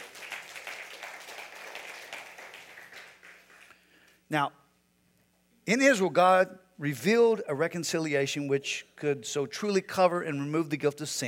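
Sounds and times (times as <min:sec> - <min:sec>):
audience clapping: 0:00.0 - 0:03.9
speech: 0:04.3 - 0:04.6, 0:05.6 - 0:11.2.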